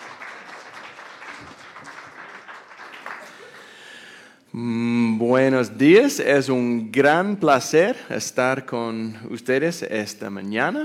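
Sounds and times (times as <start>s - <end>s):
audience applause: 0.0s - 4.0s
speech: 4.6s - 10.8s.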